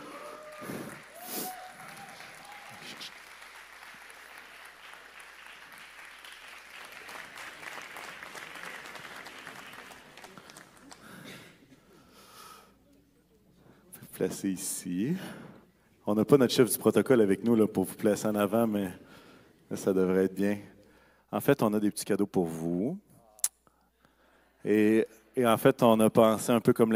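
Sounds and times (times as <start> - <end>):
audience applause: 0.0 - 11.4
speech: 14.2 - 15.4, 16.1 - 20.7, 21.3 - 23.1, 24.6 - 26.9.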